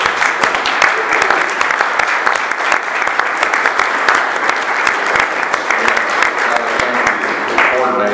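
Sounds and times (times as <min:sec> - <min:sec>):
audience applause: 0:00.0 - 0:08.0.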